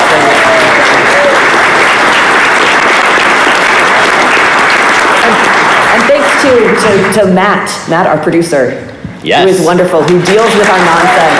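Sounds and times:
audience applause: 0.0 - 7.4, 10.0 - 11.3
speech: 6.8 - 11.3.

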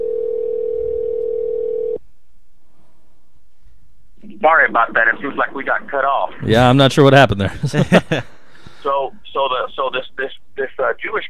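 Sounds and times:
telephone dial tone while calling back: 0.0 - 2.0
speech: 4.4 - 11.2
laughter: 7.1 - 8.3.

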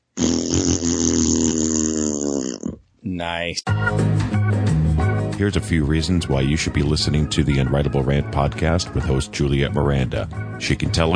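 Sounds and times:
person blowing a raspberry imitating a fart noise: 0.0 - 2.8
speech: 3.2 - 4.3, 5.4 - 11.1.

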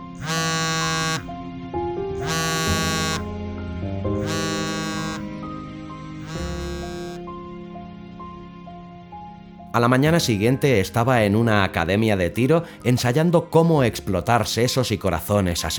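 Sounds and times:
mobile phone ringing: 0.0 - 1.3, 2.2 - 3.3, 4.2 - 5.3, 6.2 - 7.2
speech: 9.8 - 15.7.

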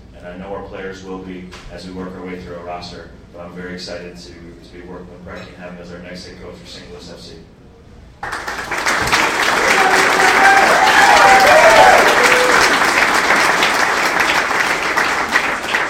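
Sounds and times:
speech: 0.2 - 7.6, 8.2 - 8.4
audience applause and cheering: 8.2 - 15.8.

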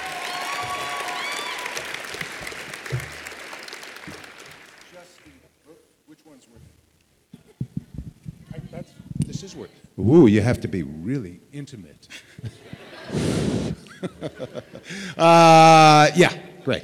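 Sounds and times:
audience applause: 0.0 - 5.4
room noise: 0.0 - 16.7
speech: 9.5 - 13.2, 14.0 - 16.8
laughter: 12.1 - 16.0.

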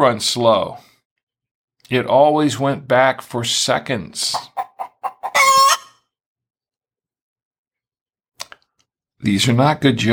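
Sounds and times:
speech: 0.0 - 0.9, 1.9 - 4.6, 9.2 - 10.1
chicken clucking sound effect: 4.3 - 6.0.

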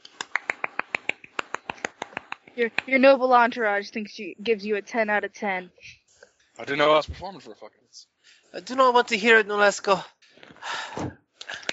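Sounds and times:
light quick clapping: 0.0 - 2.9, 11.4 - 11.7
speech: 2.6 - 6.0, 6.6 - 10.2.

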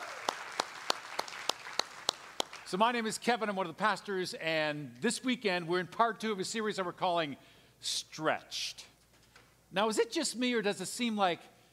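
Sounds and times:
church audience clapping: 0.0 - 2.7
speech: 2.7 - 8.9, 9.7 - 11.5.

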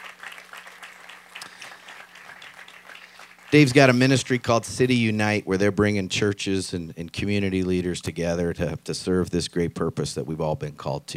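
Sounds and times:
audience applause welcoming a speaker at a community day event: 0.0 - 4.5
speech: 3.5 - 11.1.

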